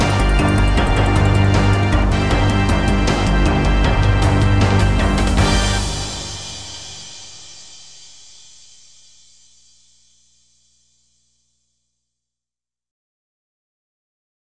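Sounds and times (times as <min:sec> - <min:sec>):
boss level music: 0:00.0 - 0:07.0.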